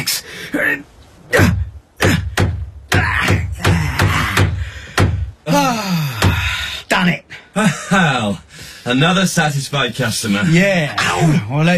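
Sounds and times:
speech: 0.1s - 2.2s, 7.6s - 11.7s
wavering vocal cry: 1.3s - 4.6s, 5.4s - 6.5s
heavy hammer blows: 1.4s - 5.4s.

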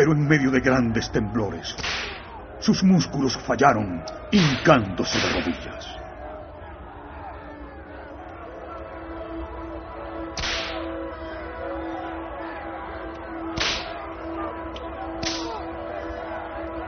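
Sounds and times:
speech: 0.0s - 6.0s
flagrum whip lashes striking a man: 1.8s - 2.3s, 4.4s - 5.6s, 10.4s - 10.9s, 13.6s - 14.0s, 15.2s - 15.6s.

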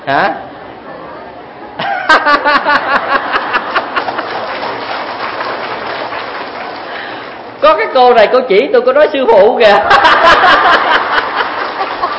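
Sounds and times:
speech: 0.0s - 0.5s, 7.6s - 10.9s
laughter: 1.8s - 4.8s, 9.8s - 12.1s
audience clapping during a Buddhist dharma talk: 3.0s - 7.6s, 10.2s - 12.1s.

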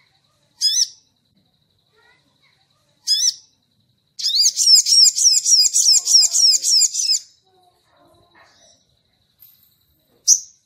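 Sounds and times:
crimson sunbird singing: 0.6s - 1.1s, 3.0s - 3.5s, 4.2s - 7.3s.

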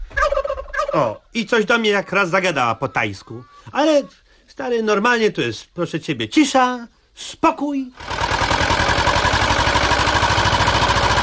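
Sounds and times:
speech: 1.0s - 8.8s
motorboat engine arriving: 8.0s - 11.2s.

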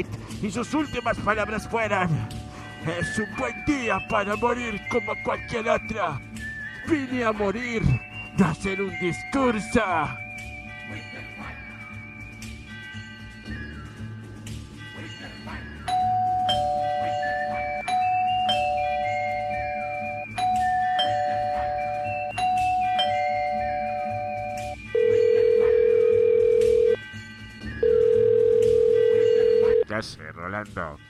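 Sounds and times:
speech: 0.0s - 10.2s
doorbell being rung repeatedly: 15.9s - 27.0s, 27.8s - 29.9s.

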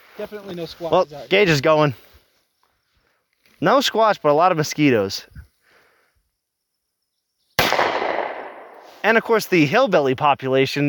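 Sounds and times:
speech: 0.2s - 2.1s, 3.6s - 5.4s, 9.0s - 10.8s
gunshot fired outdoors: 7.6s - 9.0s.

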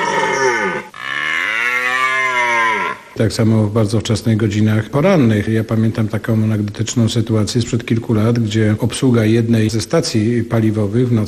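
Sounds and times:
red deer stag roaring: 0.0s - 3.2s
speech: 3.2s - 11.2s.

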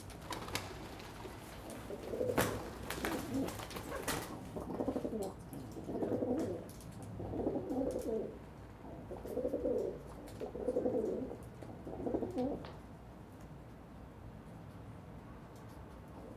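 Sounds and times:
pigeons cooing on a balcony: 0.0s - 12.6s.

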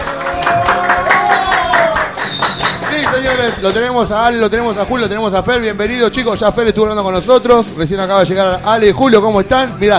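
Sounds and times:
studio audience applause: 0.0s - 4.1s
speech: 3.4s - 9.9s.

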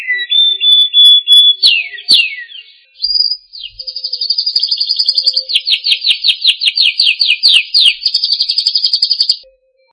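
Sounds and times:
bird singing whistled notes: 0.0s - 9.9s
faint low tone: 9.4s - 9.9s.

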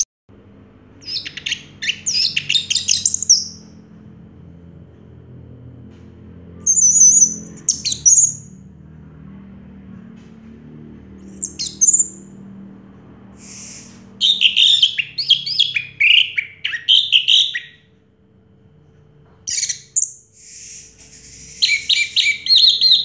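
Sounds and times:
orange-headed thrush singing: 1.0s - 9.9s, 10.5s - 18.9s, 19.5s - 23.0s.

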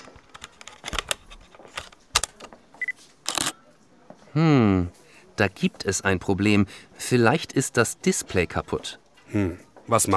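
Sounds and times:
camera clicks from being handled and tested: 1.0s - 1.2s, 1.8s - 2.3s, 3.3s - 3.5s
camera shutter snaps: 1.0s - 1.2s, 3.3s - 3.5s
speech: 4.4s - 10.1s.

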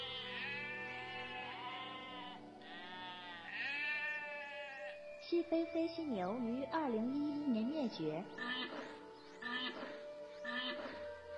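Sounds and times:
Pyrenean ibex bleating: 0.0s - 5.0s, 8.4s - 11.3s
speech: 5.3s - 8.5s.

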